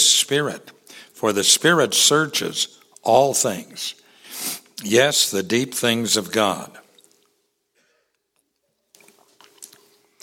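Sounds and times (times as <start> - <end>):
speech: 0.2 - 6.8
person sipping water: 6.9 - 7.4, 8.0 - 10.2.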